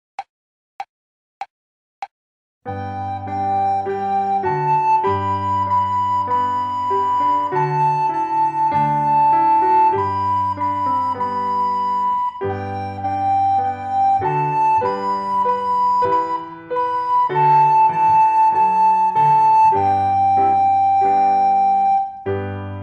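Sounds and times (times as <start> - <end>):
recorder accompaniment: 2.7 - 22.3.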